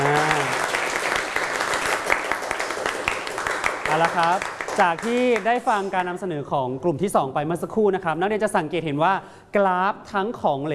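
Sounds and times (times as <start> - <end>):
students clapping for a group: 0.0 - 6.1
speech: 4.1 - 10.7.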